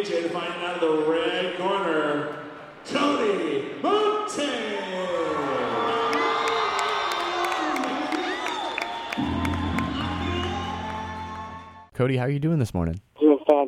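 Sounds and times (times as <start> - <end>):
speech: 0.0 - 4.8, 12.0 - 13.6
crowd at an MMA event cheering for a local fighter entering the cage: 3.9 - 11.9.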